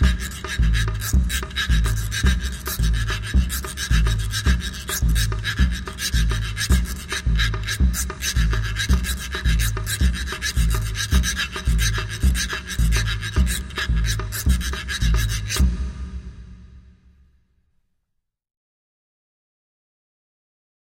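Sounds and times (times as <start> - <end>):
reco reco scraper: 0.0 - 15.7.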